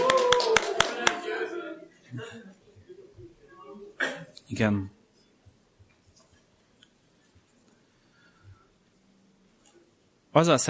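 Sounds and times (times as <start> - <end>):
sharp loud hand claps: 0.0 - 1.2
speech: 4.5 - 5.0, 10.4 - 10.6.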